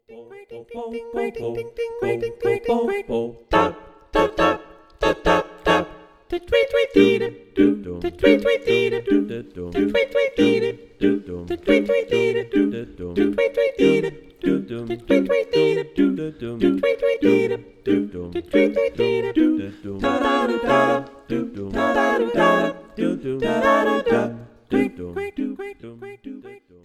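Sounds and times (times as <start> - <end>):
vocal harmonies: 0.0 - 26.8.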